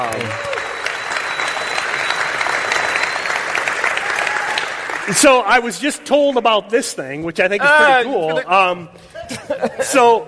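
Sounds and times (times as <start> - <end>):
audience applause: 0.0 - 5.7
speech: 5.1 - 10.2
laughter: 7.6 - 10.2.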